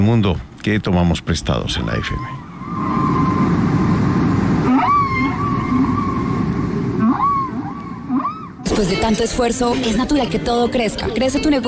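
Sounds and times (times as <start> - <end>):
speech: 0.1 - 2.9, 8.8 - 11.6
low rumble of water noise: 1.9 - 8.7
recorded whale songs: 1.9 - 8.7.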